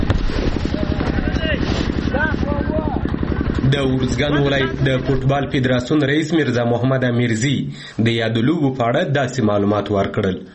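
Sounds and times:
old diesel mill engine running to power football field lights: 0.0 - 5.4
speech: 3.7 - 10.5.

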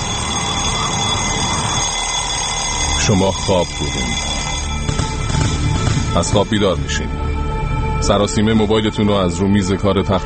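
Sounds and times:
alarm clock ringing: 0.0 - 5.4
speech: 3.1 - 4.4, 6.1 - 7.3, 8.0 - 10.2.

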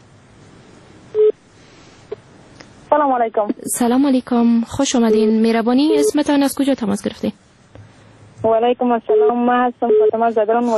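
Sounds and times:
electronic phone tone on a call-in show: 1.2 - 1.4, 5.1 - 6.2, 9.1 - 10.2
speech: 2.9 - 7.4, 8.4 - 10.7.

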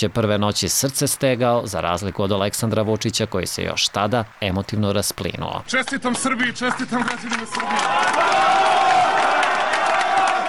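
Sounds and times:
speech: 0.0 - 8.5
crowd chanting at a Serbian election victory celebration: 7.7 - 10.4.

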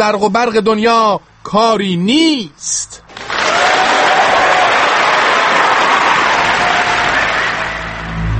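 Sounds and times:
speech: 0.0 - 3.0
applause: 3.1 - 8.3.

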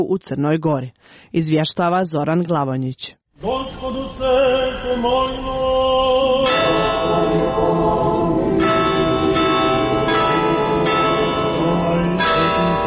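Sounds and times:
speech: 0.0 - 7.8
church bells of the largest Orthodox church in Serbia ringing: 6.3 - 12.8.

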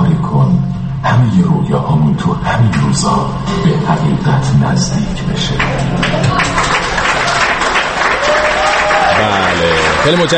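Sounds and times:
faint murmur of voices: 1.0 - 10.3
speech: 1.3 - 7.2, 9.2 - 10.3
audience applause in played recording: 5.3 - 10.3.

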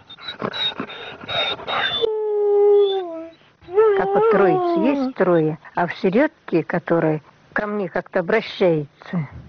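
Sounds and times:
small dog whimpering: 0.1 - 2.1, 2.8 - 5.1
speech: 4.4 - 9.4.

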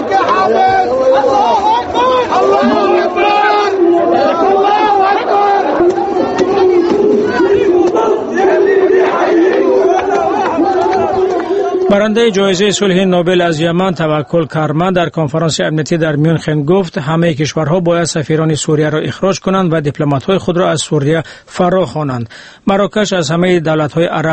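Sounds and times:
protesters chanting a religious slogan: 0.0 - 13.0
speech: 11.9 - 24.3.

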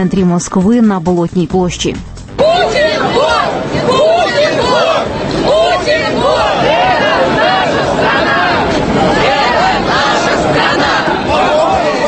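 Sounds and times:
speech: 0.0 - 2.1
large rally crowd chanting slogans: 2.4 - 12.0.

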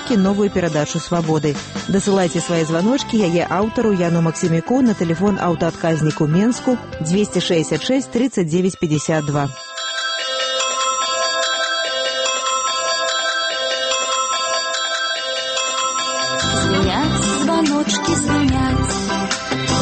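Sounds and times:
little bells ringing: 0.0 - 4.0, 8.6 - 19.8
speech: 0.1 - 9.7.

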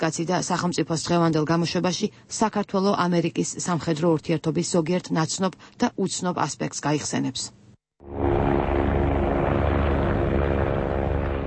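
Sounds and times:
speech: 0.0 - 8.3
refurbished American military helicopters from the Vietnam War: 8.0 - 11.4.

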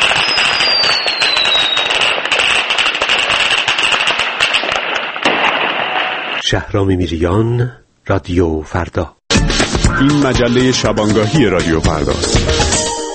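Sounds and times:
faint descending firework whistle: 0.0 - 2.3
fireworks crackling and popping: 0.0 - 6.5
speech: 6.5 - 12.6.

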